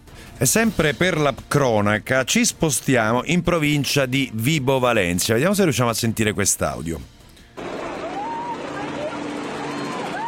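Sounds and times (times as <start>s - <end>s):
speech: 0.4s - 7.2s
helicopter: 7.6s - 10.2s.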